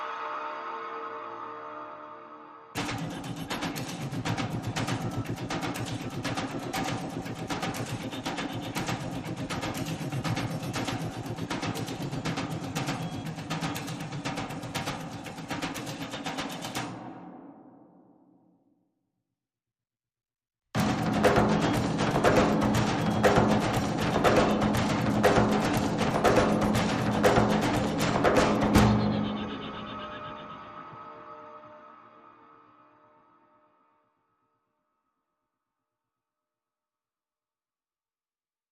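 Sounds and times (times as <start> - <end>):
small percussion: 2.8 - 17.2, 20.8 - 30.6.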